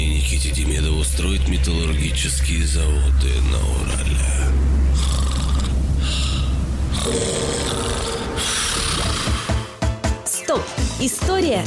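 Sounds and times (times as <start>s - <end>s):
speech: 0.6s - 5.2s, 7.0s - 8.5s, 10.5s - 11.6s
loud rasping snoring: 4.2s - 9.8s.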